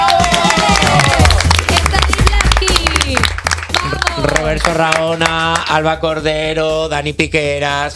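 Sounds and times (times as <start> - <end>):
people cheering and whooping: 0.0 - 1.6
audience applause: 0.0 - 5.6
speech: 4.5 - 7.9.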